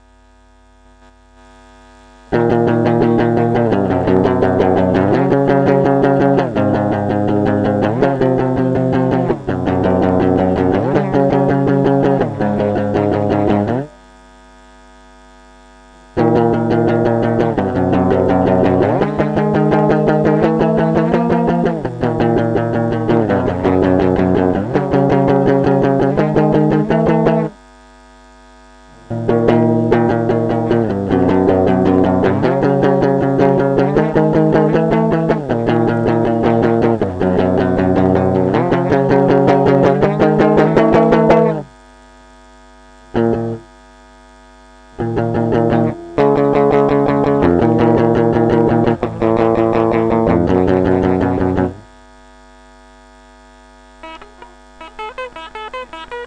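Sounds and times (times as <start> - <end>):
instrumental solo: 2.3 - 14.0, 16.2 - 27.6, 29.0 - 41.7, 44.9 - 51.8, 53.9 - 56.2.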